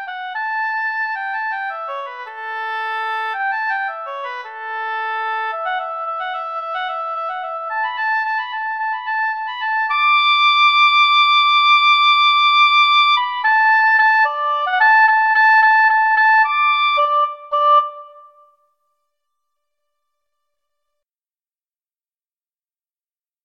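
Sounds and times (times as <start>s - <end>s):
oboe duet: 0.0s - 18.6s.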